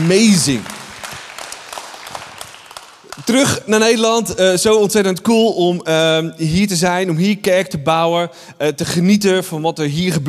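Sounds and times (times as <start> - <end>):
speech: 0.0 - 0.8, 3.3 - 10.2
audience applause: 0.0 - 3.6.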